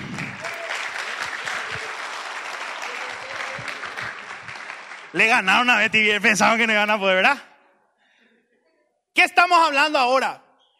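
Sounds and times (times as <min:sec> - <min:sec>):
audience applause: 0:00.0 - 0:06.4
speech: 0:05.2 - 0:07.5, 0:09.2 - 0:10.4.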